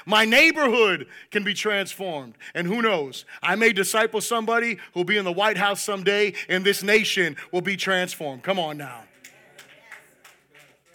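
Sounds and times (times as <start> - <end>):
speech: 0.0 - 9.1
murmur of voices: 8.8 - 10.9
scattered claps: 9.1 - 10.9.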